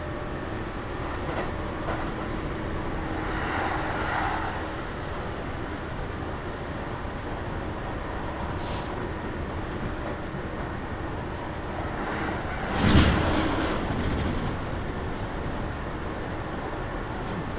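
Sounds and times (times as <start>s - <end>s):
Kintetsu Nagoya Line local train running from Shiohama to Shiroko: 0.0s - 17.5s
short hiss: 8.6s - 8.9s.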